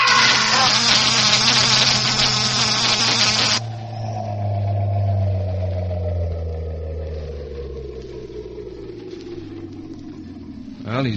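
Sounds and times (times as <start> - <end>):
electric generator buzzing during electrocution: 0.0 - 3.7
quieter droning hum: 0.0 - 11.1.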